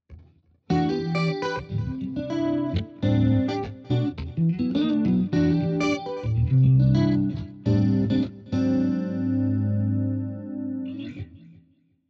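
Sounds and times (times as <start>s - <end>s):
neo soul music: 0.7s - 11.3s.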